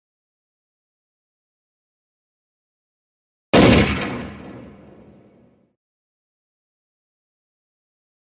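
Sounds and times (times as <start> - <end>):
handgun gunshot echoing through mountains: 3.6 - 5.5.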